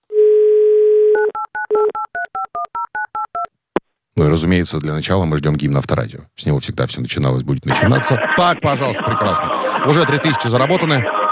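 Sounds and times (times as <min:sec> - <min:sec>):
steady dial tone: 0:00.1 - 0:02.0
speech: 0:04.3 - 0:11.2.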